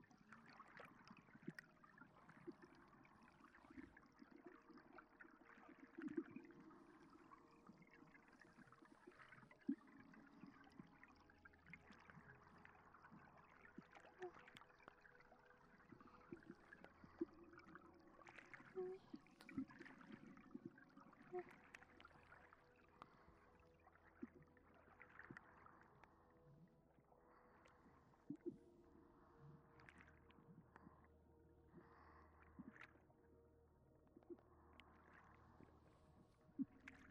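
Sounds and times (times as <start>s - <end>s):
water: 0.0s - 37.0s
breathing: 27.2s - 28.2s, 31.7s - 32.9s.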